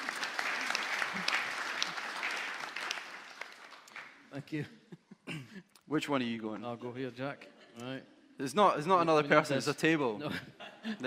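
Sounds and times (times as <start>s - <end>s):
audience applause: 0.0s - 4.3s
speech: 4.4s - 11.0s.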